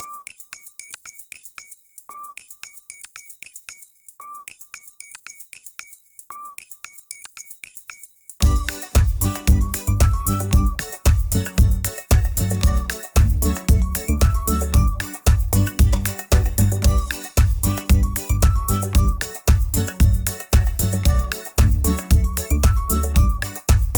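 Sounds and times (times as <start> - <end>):
ukulele: 8.4 - 23.9.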